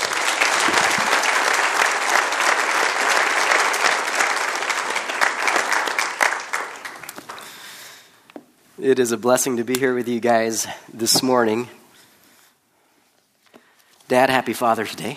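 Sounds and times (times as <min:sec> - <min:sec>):
audience applause welcoming a guest speaker to a church service: 0:00.0 - 0:07.8
speech: 0:08.8 - 0:11.8, 0:14.1 - 0:15.1.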